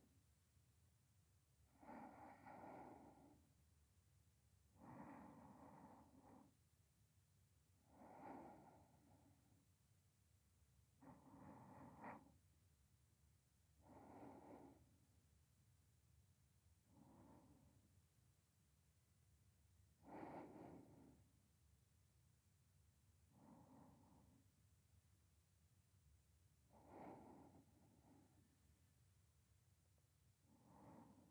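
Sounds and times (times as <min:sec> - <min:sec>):
sleeping breath voice beside the listener: 0:01.7 - 0:03.5, 0:04.8 - 0:06.5, 0:07.9 - 0:09.5, 0:11.0 - 0:12.3, 0:13.8 - 0:14.9, 0:16.9 - 0:17.9, 0:20.0 - 0:21.2, 0:23.3 - 0:24.4, 0:26.7 - 0:28.5, 0:30.4 - 0:31.3.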